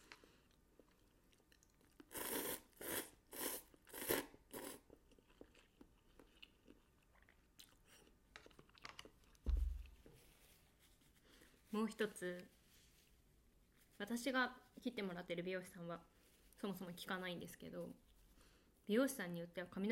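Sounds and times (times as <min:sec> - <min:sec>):
crunching and chewing while eating cup noodles: 0:00.0 - 0:10.0
speech: 0:11.7 - 0:12.6, 0:14.0 - 0:18.0, 0:18.9 - 0:19.9.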